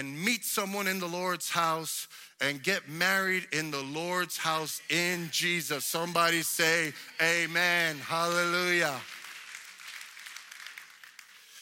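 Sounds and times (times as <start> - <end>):
speech: 0.0 - 9.2
weak clapping: 8.2 - 11.5.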